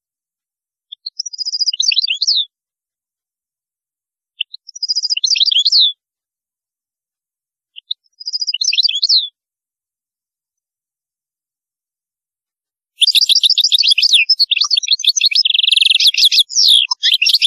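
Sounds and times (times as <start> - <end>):
European goldfinch song: 0.9 - 2.5, 4.4 - 6.0, 7.8 - 9.4, 13.0 - 17.4.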